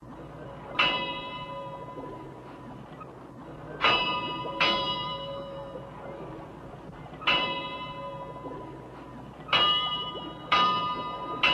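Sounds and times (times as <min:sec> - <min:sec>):
ambient bell buoy ringing: 0:00.6 - 0:02.3, 0:03.8 - 0:06.0, 0:07.2 - 0:08.9, 0:09.5 - 0:11.5.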